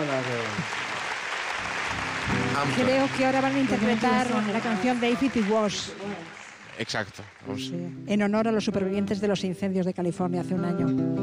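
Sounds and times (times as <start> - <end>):
audience applause at a music event honoring survivors of the California wildfires: 0.0 - 7.7
speech: 2.6 - 11.2.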